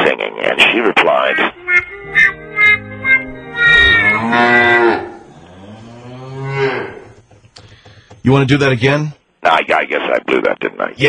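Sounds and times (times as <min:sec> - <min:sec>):
speech: 0:00.7 - 0:01.6, 0:08.3 - 0:11.0
cow mooing, played as a sound effect: 0:01.6 - 0:07.2.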